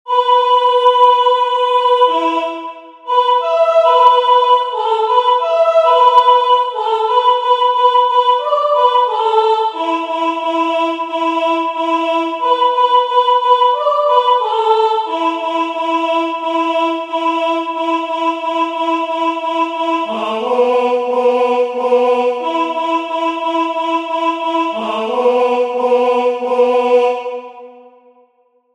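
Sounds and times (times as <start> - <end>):
song: 0.1 - 28.0.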